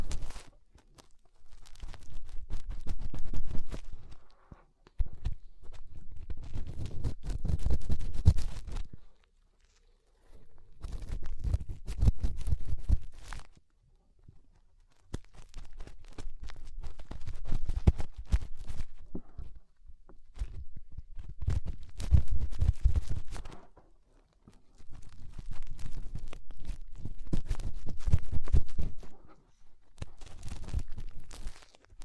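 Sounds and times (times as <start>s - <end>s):
fingers rubbing and scraping inside an ear: 0.0s - 13.6s, 14.5s - 32.0s.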